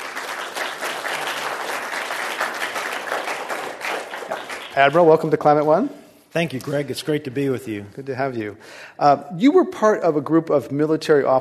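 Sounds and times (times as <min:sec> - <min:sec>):
audience applause at the Commonwealth Club greeting Vice Admiral Dennis McGinn: 0:00.0 - 0:05.1
speech: 0:04.8 - 0:11.3.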